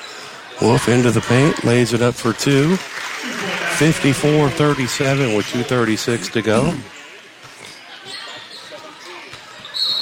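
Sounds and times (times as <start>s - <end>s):
basketball game crowd murmur: 0.0s - 10.0s
speech: 0.6s - 3.0s, 3.8s - 7.0s
referee's whistle at basketball game: 9.6s - 10.0s.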